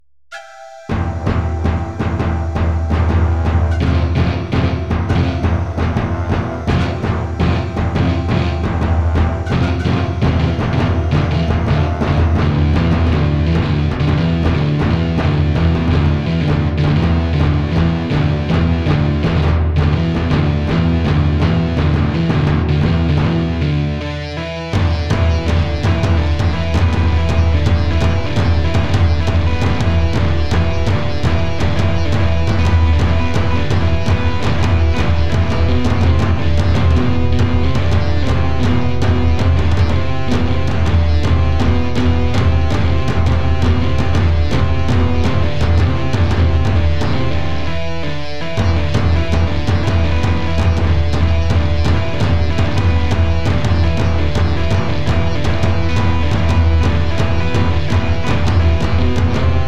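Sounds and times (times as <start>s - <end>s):
overdriven electric guitar: 0.4s - 59.6s
street drum band: 0.9s - 23.6s, 24.8s - 47.7s, 48.6s - 59.6s.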